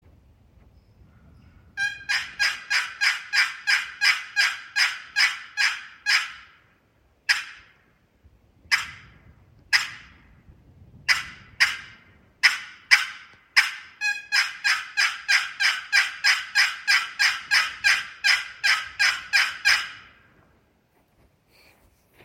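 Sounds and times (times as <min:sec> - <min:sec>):
Bloodwood and Cherry turkey calls: 0:01.7 - 0:06.6, 0:07.3 - 0:07.8, 0:08.7 - 0:09.1, 0:09.7 - 0:10.2, 0:11.1 - 0:20.3.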